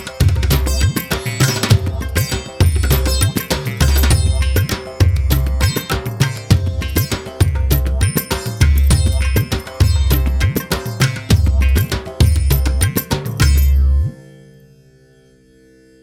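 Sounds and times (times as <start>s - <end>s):
Indian beat: 0.0s - 14.2s.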